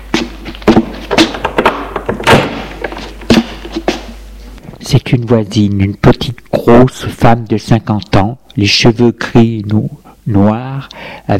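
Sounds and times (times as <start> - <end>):
apartment door being opened: 0.7 - 3.5
speech: 4.9 - 11.3.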